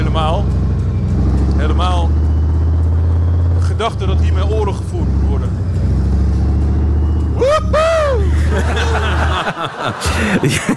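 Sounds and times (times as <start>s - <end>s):
Leopard 1 tank engine rumbling: 0.0s - 10.7s
speech: 3.8s - 5.6s, 8.6s - 10.7s
person laughing: 7.4s - 10.7s.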